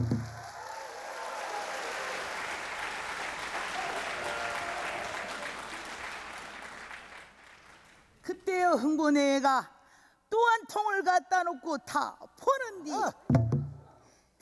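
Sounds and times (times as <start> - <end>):
audience applause: 0.0 - 8.1
speech: 8.7 - 9.8, 10.4 - 13.4.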